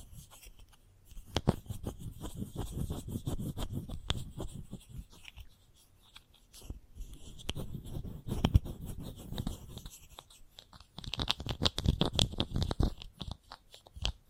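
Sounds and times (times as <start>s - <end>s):
chalk scratching against a hard surface: 0.0s - 14.2s.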